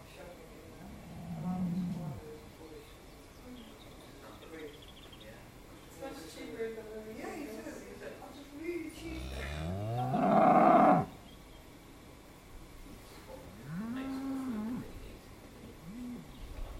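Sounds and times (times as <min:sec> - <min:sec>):
cows: 0:00.8 - 0:02.4, 0:09.0 - 0:11.1, 0:13.5 - 0:15.0, 0:15.8 - 0:16.7.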